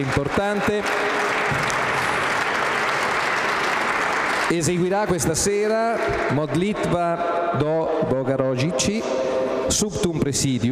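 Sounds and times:
speech: 0:00.0 - 0:01.6, 0:04.5 - 0:10.7
audience applause: 0:00.0 - 0:05.6.

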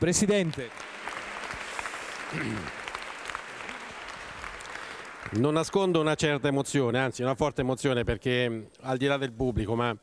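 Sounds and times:
speech: 0:00.0 - 0:01.0, 0:02.3 - 0:02.8, 0:05.3 - 0:10.0
applause from a packed church audience on a Saturday evening: 0:00.0 - 0:06.4.

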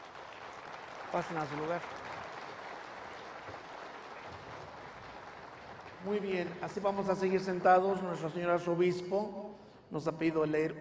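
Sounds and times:
crowd clapping: 0:00.0 - 0:08.4
speech: 0:01.1 - 0:02.1, 0:06.0 - 0:10.8.

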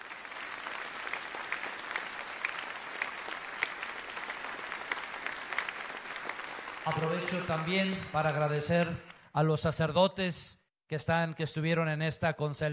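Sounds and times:
loud audience applause: 0:00.0 - 0:09.3
speech: 0:06.9 - 0:12.7.

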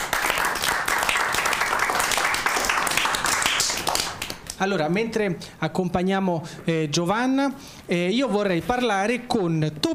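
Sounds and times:
audience applause: 0:00.0 - 0:04.4
speech: 0:04.6 - 0:09.9.

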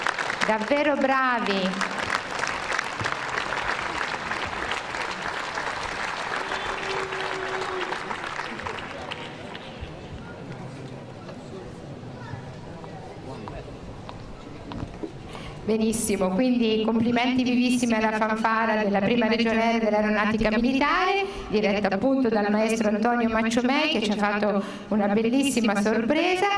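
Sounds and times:
large crowd giving a standing ovation: 0:00.0 - 0:10.1
speech: 0:00.5 - 0:01.9, 0:15.7 - 0:26.5.

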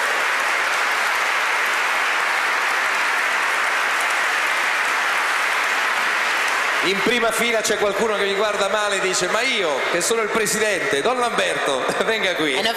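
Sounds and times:
audience applause: 0:00.0 - 0:12.7
speech: 0:06.8 - 0:12.7.

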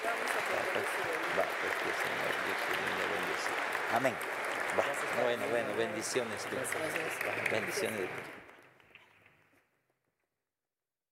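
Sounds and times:
audience applause: 0:00.0 - 0:08.7
speech: 0:03.9 - 0:04.3, 0:05.2 - 0:08.4.

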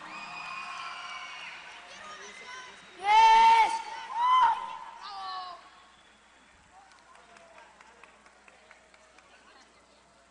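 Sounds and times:
audience applause: 0:00.0 - 0:03.1, 0:06.1 - 0:09.8
crowd cheering: 0:00.0 - 0:09.6.

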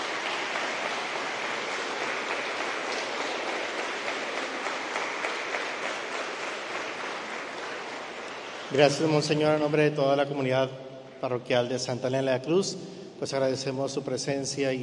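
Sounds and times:
audience applause: 0:00.0 - 0:09.3
speech: 0:08.7 - 0:14.8.

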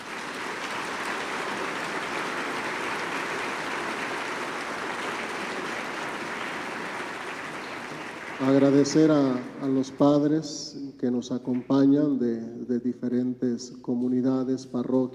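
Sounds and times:
audience applause: 0:00.0 - 0:10.0
speech: 0:08.4 - 0:15.1.

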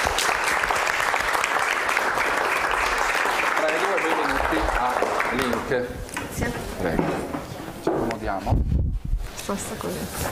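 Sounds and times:
audience applause welcoming guests: 0:00.0 - 0:05.8
speech: 0:05.7 - 0:07.4, 0:08.2 - 0:08.7, 0:09.5 - 0:10.3.

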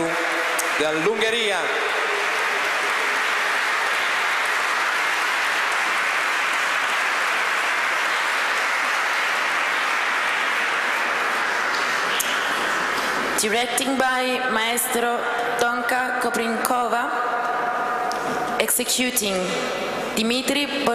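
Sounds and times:
large audience applause for a choir: 0:00.0 - 0:13.7
speech: 0:00.8 - 0:02.0, 0:13.4 - 0:17.3, 0:18.6 - 0:20.9.

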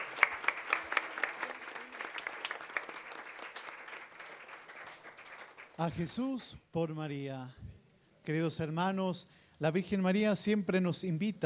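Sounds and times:
audience applause: 0:00.0 - 0:06.0
speech: 0:05.8 - 0:07.6, 0:08.2 - 0:11.4.

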